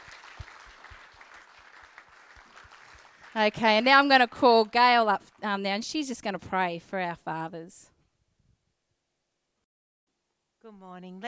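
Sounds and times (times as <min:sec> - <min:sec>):
loud individual claps: 0:00.0 - 0:05.4
crowd applauding: 0:00.0 - 0:06.0
speech: 0:03.4 - 0:07.9, 0:10.6 - 0:11.2.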